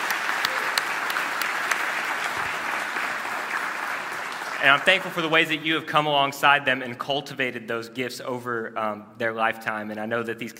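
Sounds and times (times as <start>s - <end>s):
crowd applauding: 0.0s - 5.6s
speech: 4.6s - 10.5s.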